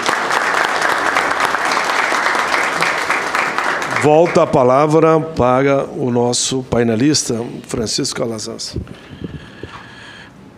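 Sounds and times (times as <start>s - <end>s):
audience applause: 0.0s - 4.7s
speech: 4.0s - 9.2s.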